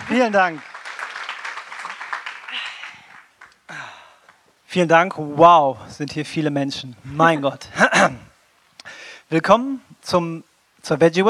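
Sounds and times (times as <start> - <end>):
audience applause: 0.0 - 4.2
speech: 0.1 - 0.7, 4.7 - 8.2, 9.3 - 11.2.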